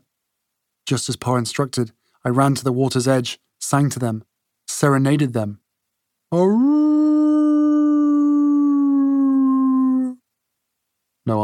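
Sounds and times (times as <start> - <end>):
speech: 0.9 - 5.6, 6.3 - 7.0, 11.3 - 11.4
seal singing a long mournful howl: 6.4 - 10.2.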